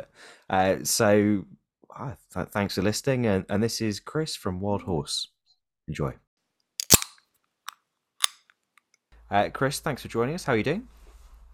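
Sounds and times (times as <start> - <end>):
speech: 0.0 - 6.2, 9.3 - 11.0
beer can cracked open: 6.8 - 7.1.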